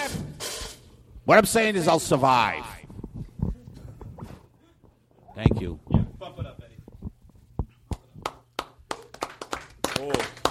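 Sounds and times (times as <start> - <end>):
speech: 1.3 - 2.8, 5.4 - 5.9
few people clapping: 7.8 - 10.4.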